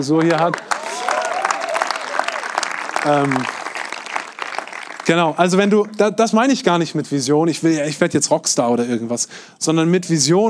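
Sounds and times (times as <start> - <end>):
speech: 0.0 - 1.2, 3.0 - 3.6, 5.1 - 10.4
audience applause: 0.0 - 6.0
faint voices and cheers: 0.6 - 3.5.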